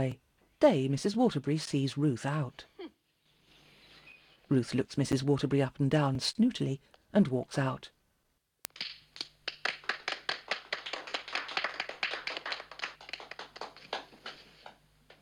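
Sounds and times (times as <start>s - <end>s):
speech: 0.0s - 2.7s, 4.5s - 8.0s, 8.8s - 9.0s
children applauding indoors: 8.8s - 14.8s.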